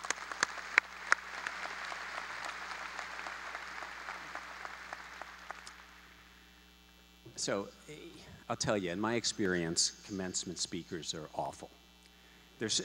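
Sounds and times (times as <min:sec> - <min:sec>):
audience applauding: 0:00.0 - 0:06.2
speech: 0:07.4 - 0:11.8, 0:12.6 - 0:12.8.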